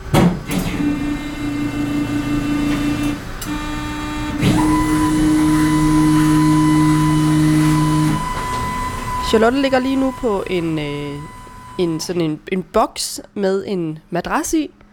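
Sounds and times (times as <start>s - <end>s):
bone density scanner arm motor whining as it moves into position: 0.6s - 12.4s
speech: 9.3s - 14.8s.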